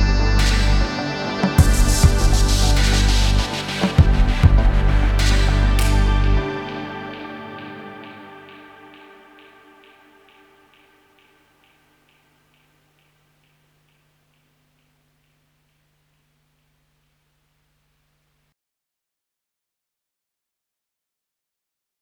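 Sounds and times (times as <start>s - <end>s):
symphonic Balkan melody: 0.0s - 10.9s.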